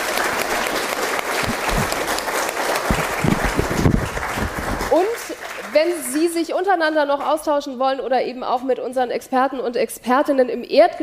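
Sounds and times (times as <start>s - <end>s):
crowd applauding: 0.0s - 6.3s
speech: 5.8s - 11.0s.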